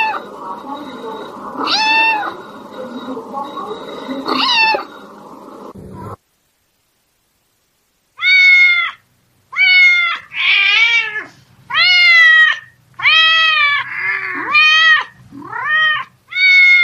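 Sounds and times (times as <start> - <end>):
domestic cat meowing: 1.6 - 2.3, 4.3 - 4.9, 8.2 - 16.8.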